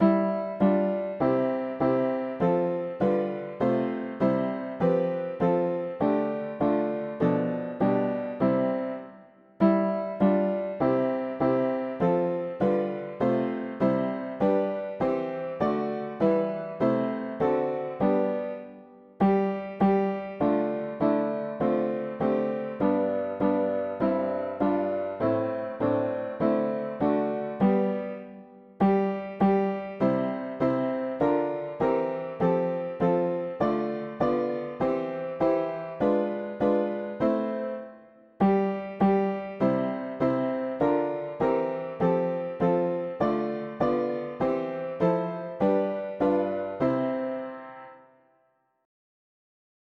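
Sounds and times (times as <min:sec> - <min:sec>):
mono piano: 0:00.0 - 0:48.9.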